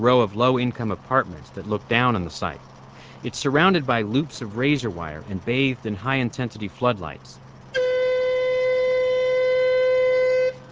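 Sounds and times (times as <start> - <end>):
speech: 0.0 - 7.4
warning whistle before a dynamite blast: 7.7 - 10.7.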